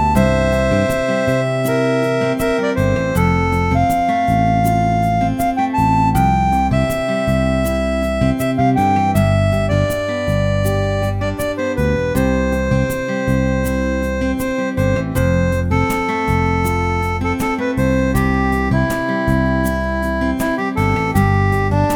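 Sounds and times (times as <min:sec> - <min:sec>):
guitar strumming: 0:00.0 - 0:21.9.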